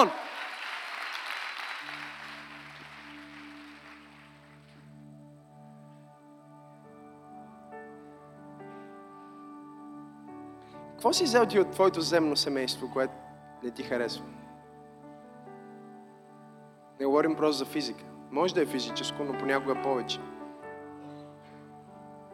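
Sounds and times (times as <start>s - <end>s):
speech: 0.0s - 0.2s, 11.0s - 14.5s, 17.0s - 20.3s
audience applause: 0.0s - 4.9s.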